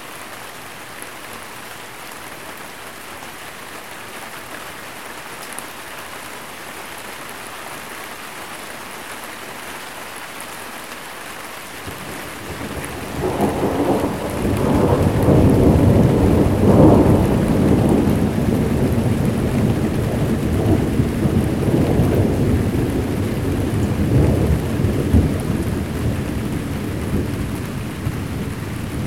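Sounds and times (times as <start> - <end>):
light rain: 0.0 - 29.0
thunder: 11.9 - 29.0.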